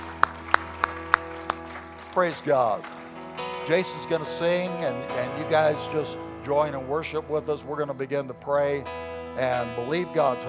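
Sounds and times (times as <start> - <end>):
audience clapping: 0.0 - 4.4
speech: 2.2 - 3.0, 3.7 - 10.4.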